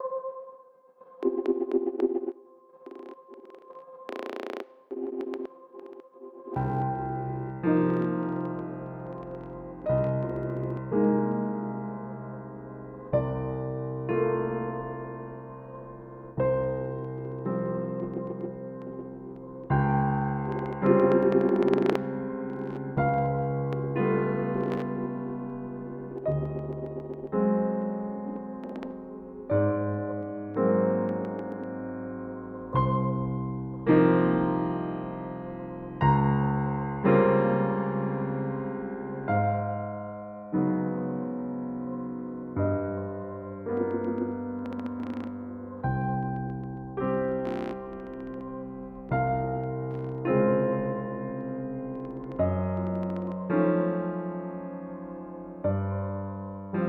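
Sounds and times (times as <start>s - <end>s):
piano: 0.0s - 56.8s.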